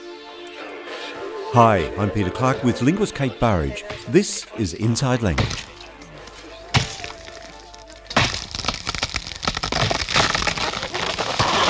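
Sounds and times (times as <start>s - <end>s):
speech: 1.5s - 5.8s
tree being chopped with axe: 5.3s - 5.8s, 6.7s - 7.4s, 8.1s - 11.6s
tree splintering and cracking: 5.3s - 11.6s.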